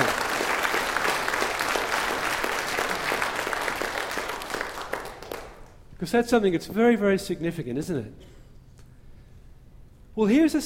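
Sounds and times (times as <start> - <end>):
audience applause: 0.0 - 5.7
speech: 6.0 - 8.3, 10.2 - 10.6.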